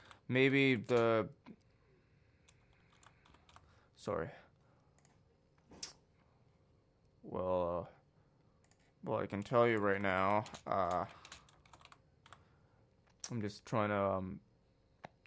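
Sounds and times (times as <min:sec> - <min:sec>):
speech: 0:00.3 - 0:01.5, 0:04.0 - 0:04.4, 0:07.3 - 0:08.0, 0:09.0 - 0:11.2, 0:13.3 - 0:14.5
typing on a computer keyboard: 0:02.4 - 0:03.6, 0:08.6 - 0:12.4.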